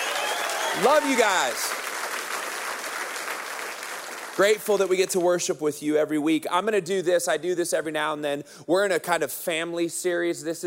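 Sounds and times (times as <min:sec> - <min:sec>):
large crowd applauding: 0:00.0 - 0:05.2
speech: 0:00.8 - 0:01.8, 0:04.4 - 0:10.6.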